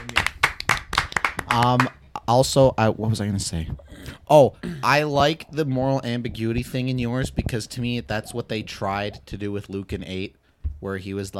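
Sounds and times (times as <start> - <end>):
audience clapping: 0.0 - 2.0
speech: 1.5 - 11.3.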